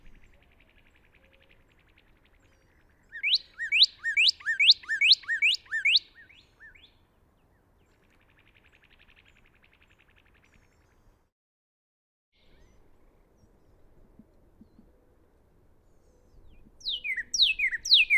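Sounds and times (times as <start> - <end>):
Northern cardinal singing rapid sharp whistled notes: 3.1 - 7.0, 16.8 - 18.1.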